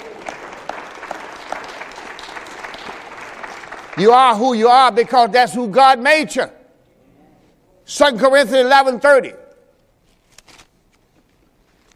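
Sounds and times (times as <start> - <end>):
audience clapping hands: 0.0 - 5.2
speech: 4.0 - 6.6, 7.9 - 9.4.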